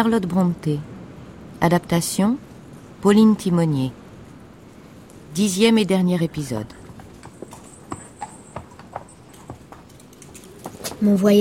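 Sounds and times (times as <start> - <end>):
speech: 0.0 - 0.9, 1.6 - 4.0, 5.3 - 6.8, 11.0 - 11.3
faint continuous rolling hiss: 0.0 - 11.3
horse-drawn carriage hooves clip-clopping: 6.4 - 11.3.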